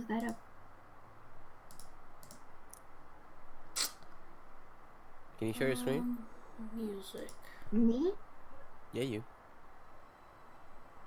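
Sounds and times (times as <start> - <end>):
speech: 0.0 - 0.5, 5.4 - 8.3, 8.9 - 9.4
computer mouse clicks opening a Windows services panel on a PC: 1.6 - 2.9, 7.1 - 7.4.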